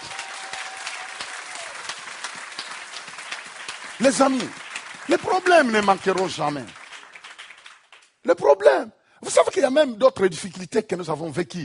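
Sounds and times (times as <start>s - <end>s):
church congregation applauding to acclaim Jesus: 0.0s - 8.4s
speech: 4.0s - 6.8s, 8.2s - 11.6s.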